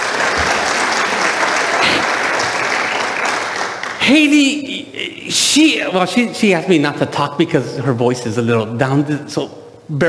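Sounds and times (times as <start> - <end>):
audience applause: 0.0 - 4.6
laughter: 0.0 - 9.4
speech: 4.1 - 10.0.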